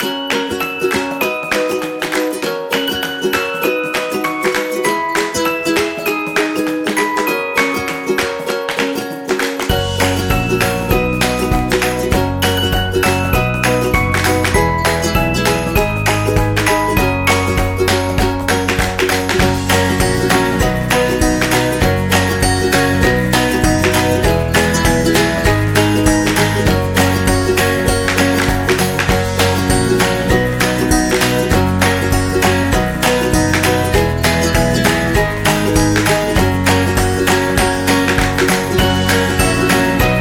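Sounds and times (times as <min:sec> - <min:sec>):
commercial folk music: 0:00.0 - 0:40.1.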